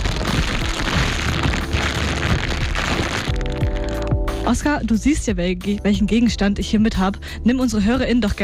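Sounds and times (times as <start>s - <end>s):
plastic bag crinkled and rustled: 0.0s - 4.5s
speech: 4.5s - 8.4s.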